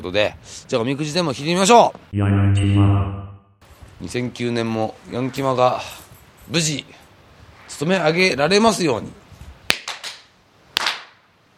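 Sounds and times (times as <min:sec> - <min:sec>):
speech: 0:00.0 - 0:03.2, 0:04.0 - 0:07.0, 0:07.7 - 0:09.2
ritual hand claps at a Shinto shrine: 0:09.7 - 0:10.2, 0:10.8 - 0:11.2.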